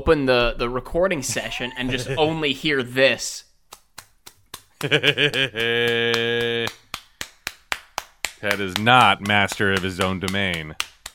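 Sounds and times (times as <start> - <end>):
speech: 0.0 - 3.5, 4.8 - 6.8, 8.4 - 10.9
laughter: 1.3 - 2.8, 4.8 - 6.8
hand slapping an itchy tattoo: 3.7 - 11.1.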